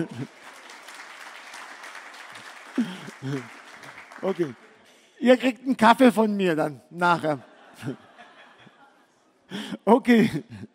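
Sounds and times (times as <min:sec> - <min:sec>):
speech: 0:00.0 - 0:00.4, 0:02.8 - 0:03.6, 0:04.2 - 0:04.6, 0:05.2 - 0:08.0, 0:09.5 - 0:10.7
laughter: 0:00.0 - 0:00.6, 0:02.7 - 0:04.5, 0:07.2 - 0:10.7
audience clapping for winners: 0:00.0 - 0:05.2.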